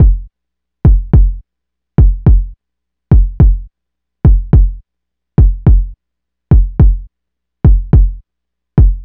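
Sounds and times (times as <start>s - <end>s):
straight drum kit world pop beat: 0.0s - 0.2s, 0.9s - 1.4s, 2.0s - 2.5s, 3.1s - 3.6s, 4.3s - 4.8s, 5.4s - 5.9s, 6.5s - 7.0s, 7.7s - 8.2s, 8.8s - 9.0s.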